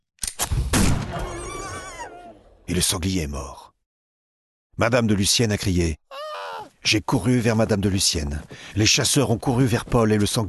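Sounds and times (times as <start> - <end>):
rifle gunshot: 0.7 - 1.2
speech: 2.7 - 3.7, 4.8 - 6.2, 6.8 - 10.4.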